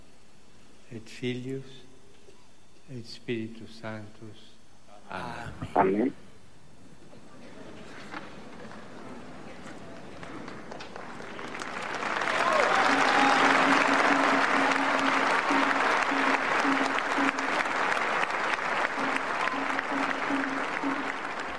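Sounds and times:
speech: 0:00.9 - 0:01.9, 0:02.9 - 0:04.5, 0:05.1 - 0:06.2
low hum: 0:05.1 - 0:06.4
applause from a large crowd: 0:09.9 - 0:21.5.

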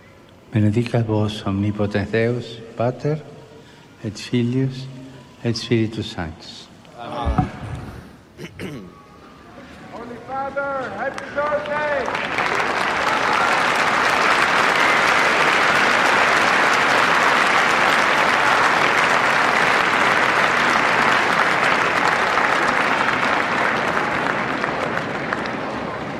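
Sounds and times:
speech: 0:00.5 - 0:03.4, 0:04.0 - 0:07.6
storm of applause from a large crowd: 0:10.0 - 0:26.1.

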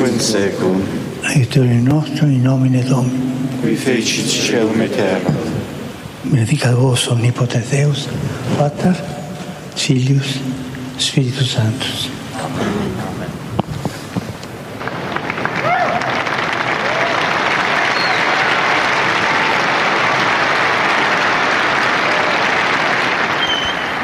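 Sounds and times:
speech: 0:00.2 - 0:05.5, 0:06.2 - 0:09.2, 0:09.8 - 0:12.8
pilgrims applauding in St. Peter's Square: 0:14.8 - 0:24.0.

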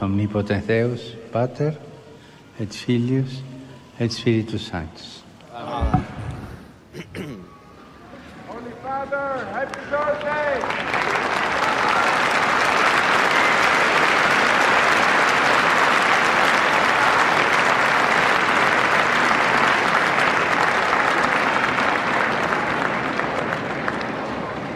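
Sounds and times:
speech: 0:00.0 - 0:01.9, 0:02.6 - 0:06.1, 0:08.9 - 0:11.1
storm of applause from a large crowd: 0:09.4 - 0:24.7.

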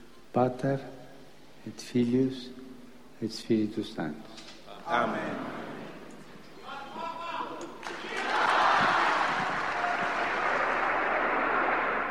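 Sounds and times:
speech: 0:00.4 - 0:01.0, 0:01.6 - 0:02.6, 0:03.2 - 0:05.6
large crowd cheering with joyful shouts: 0:06.6 - 0:12.0
large crowd applause: 0:07.8 - 0:12.0.

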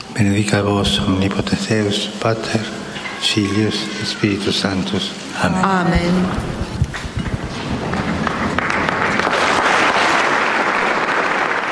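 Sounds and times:
speech: 0:00.2 - 0:06.6
loud applause from a packed audience hall: 0:02.7 - 0:05.4, 0:07.6 - 0:11.7.

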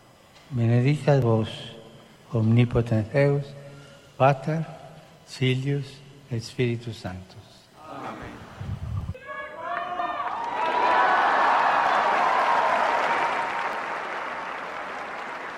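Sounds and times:
speech: 0:00.5 - 0:01.7, 0:02.3 - 0:03.6, 0:04.2 - 0:07.5
audience applauding: 0:09.7 - 0:15.5.

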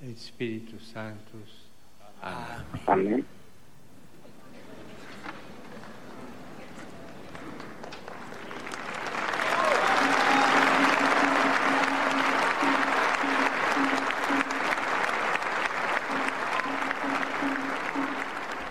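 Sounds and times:
speech: 0:00.0 - 0:03.4
audience applause: 0:07.0 - 0:18.6.

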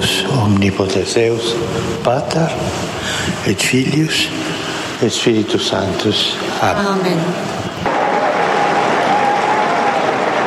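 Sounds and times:
speech: 0:00.0 - 0:07.6
crowd applauding: 0:07.8 - 0:10.4.

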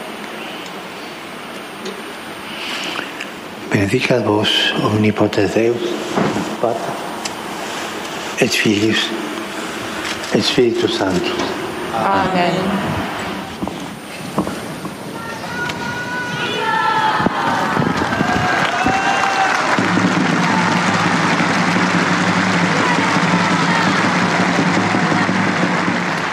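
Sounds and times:
speech: 0:01.8 - 0:02.1, 0:03.8 - 0:07.1, 0:08.4 - 0:09.3, 0:10.4 - 0:13.0
crowd applause greeting the Pope: 0:06.6 - 0:13.6, 0:15.4 - 0:26.3.

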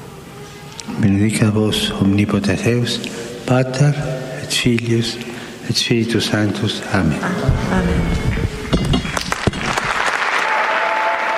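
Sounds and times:
speech: 0:00.9 - 0:08.9
audience applause: 0:09.1 - 0:11.3.

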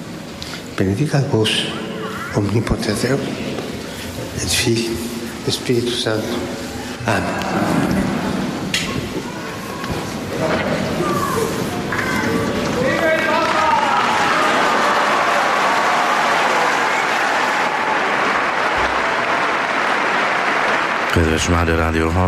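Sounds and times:
speech: 0:00.8 - 0:03.5, 0:04.3 - 0:07.9, 0:21.4 - 0:22.2
large crowd applauding loudly: 0:06.7 - 0:22.2.

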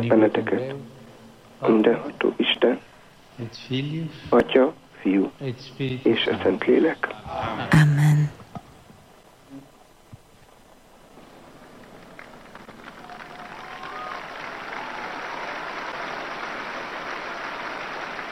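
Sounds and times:
speech: 0:00.0 - 0:01.0, 0:01.6 - 0:08.1
pilgrims applauding in the square: 0:11.6 - 0:18.2.

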